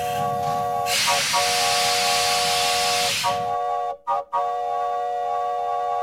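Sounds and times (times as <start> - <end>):
hissing steam: 0.0 - 3.6
steam train whistle multi-toned chord: 0.0 - 6.0.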